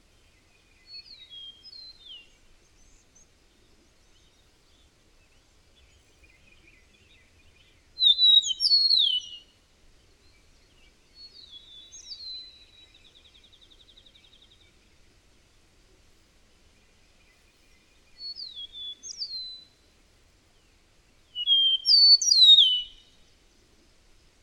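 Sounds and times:
steady hiss: 0.0 - 24.4
bird whistling song: 0.8 - 3.0, 7.1 - 9.5, 11.2 - 13.0, 18.2 - 19.8, 21.3 - 23.2.

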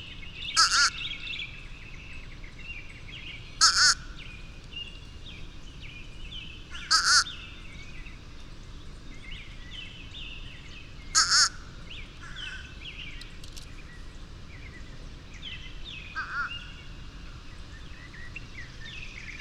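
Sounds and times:
bird warbling: 0.5 - 1.2, 3.6 - 4.2, 6.7 - 7.6, 11.1 - 11.7, 16.1 - 16.8.

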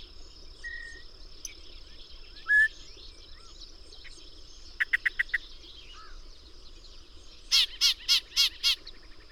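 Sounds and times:
bird calls: 0.0 - 9.3.

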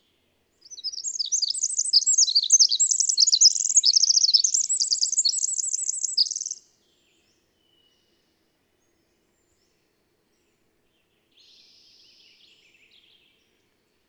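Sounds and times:
bird twittering: 0.7 - 6.6.

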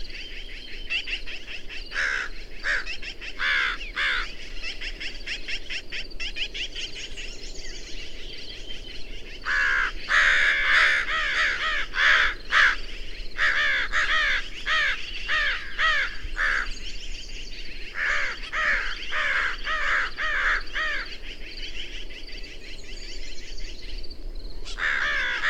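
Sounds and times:
bird cawing: 1.0 - 5.5, 9.4 - 16.8, 17.9 - 21.4, 24.7 - 25.4.

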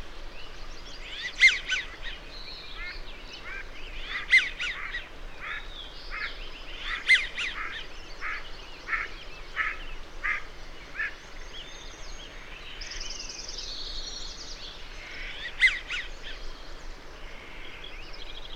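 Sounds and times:
harsh bird calls: 1.0 - 11.3, 14.9 - 16.4.

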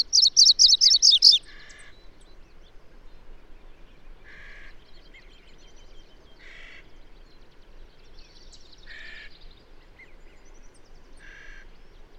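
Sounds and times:
bird song of sharp high twittering notes slurring downward: 0.0 - 1.7.

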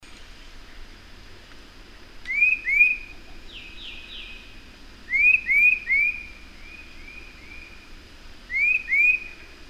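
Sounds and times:
bird singing short rising whistled notes: 2.3 - 4.5, 5.1 - 7.9, 8.5 - 9.5.

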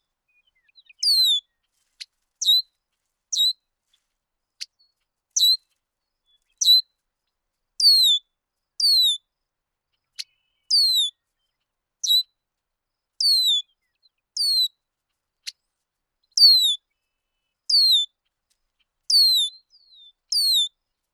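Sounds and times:
bird song of high descending whistled phrases: 0.3 - 1.6, 2.4 - 2.6, 3.3 - 3.6, 5.4 - 5.6, 6.3 - 6.8, 7.8 - 8.2, 8.8 - 9.2, 10.2 - 11.2, 12.0 - 12.3, 13.2 - 14.7, 16.3 - 16.9, 17.7 - 18.1, 19.1 - 20.8.

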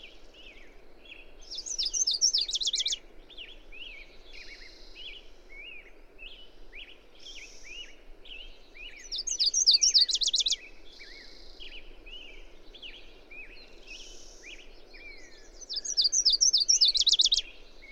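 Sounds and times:
bird song of high chirps ending in a fast trill: 1.6 - 3.0, 9.0 - 10.6, 15.5 - 17.4.

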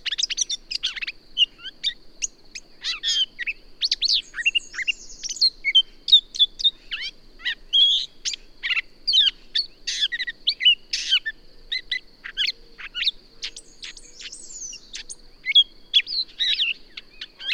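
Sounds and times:
bird song: 0.0 - 17.5.

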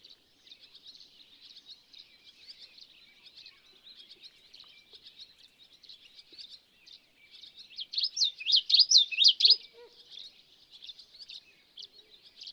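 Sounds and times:
bird song: 0.0 - 12.5.

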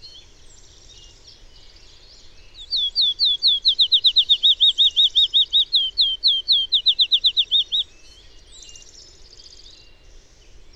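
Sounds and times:
bird singing fast slurred whistles: 2.7 - 7.8.

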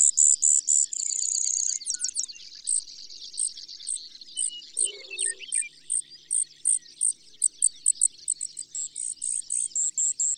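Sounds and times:
bird trilling: 4.8 - 5.7.

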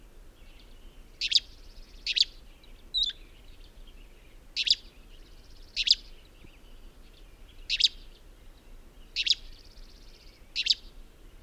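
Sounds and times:
bird chirping: 0.4 - 11.4.

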